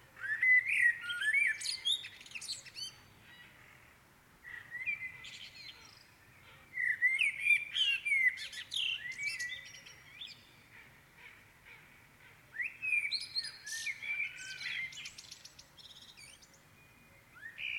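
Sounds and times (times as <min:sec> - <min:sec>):
birds singing in the morning: 0:00.2 - 0:17.7.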